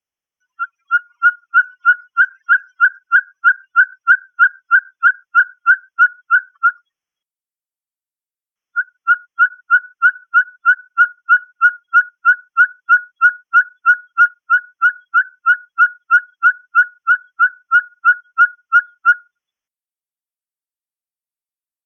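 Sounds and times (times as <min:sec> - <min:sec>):
ferruginous pygmy owl whistled toots: 0:00.6 - 0:06.8, 0:08.8 - 0:19.3.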